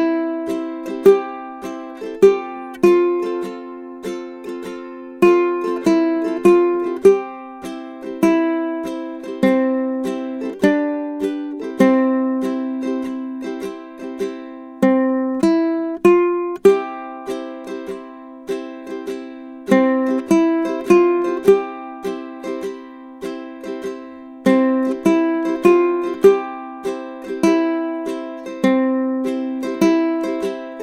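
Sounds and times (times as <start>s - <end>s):
ukulele tune: 0.0s - 30.8s.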